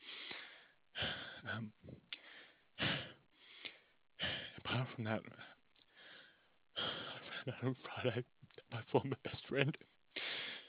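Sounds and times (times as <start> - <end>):
heavy breaths from a distressed speaker calming down: 0.0 - 4.6, 5.4 - 7.5, 10.1 - 10.6
speech: 1.4 - 2.1, 4.8 - 5.6, 7.4 - 9.9.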